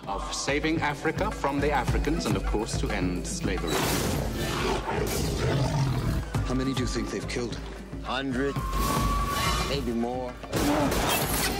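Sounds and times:
speech: 0.1 - 11.5
lion roaring in film excerpt: 4.4 - 6.5.

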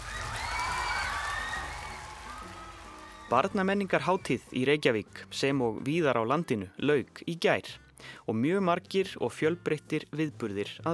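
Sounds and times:
faint whoops and cheers: 0.0 - 3.6
audience applauding in a concert hall at a children's culture festival: 0.0 - 4.0
speech: 3.3 - 10.9.

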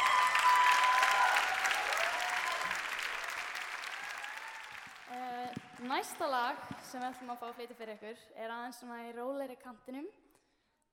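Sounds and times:
audience applause: 0.0 - 7.6
speech: 5.9 - 10.2.

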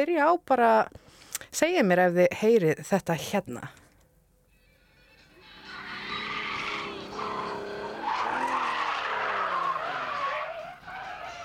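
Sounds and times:
speech: 0.0 - 3.8
car tires screeching: 5.4 - 11.4
engine noise: 5.4 - 11.4.

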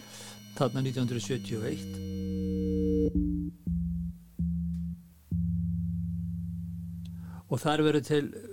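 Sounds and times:
speech: 0.6 - 2.2, 7.5 - 8.5
early electronic studio buzzy synthetic drones: 0.8 - 7.4.

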